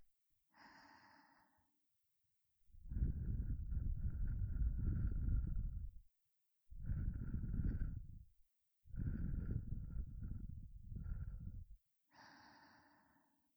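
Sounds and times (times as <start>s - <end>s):
breath blowing: 2.9s - 6.0s, 6.7s - 8.3s, 8.9s - 13.0s.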